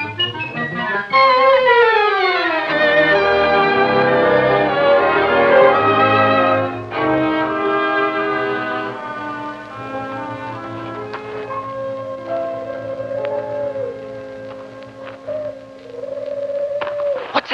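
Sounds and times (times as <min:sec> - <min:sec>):
steady low drone: 0:01.3 - 0:17.5
eerie moaning wind howling in a graveyard: 0:11.2 - 0:17.4.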